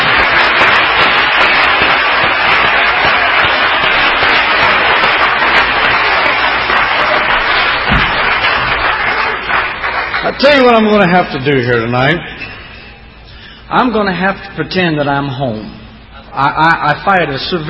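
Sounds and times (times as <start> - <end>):
large group clapping hands: 0.0 - 11.8
speech: 10.4 - 12.5, 13.7 - 17.6.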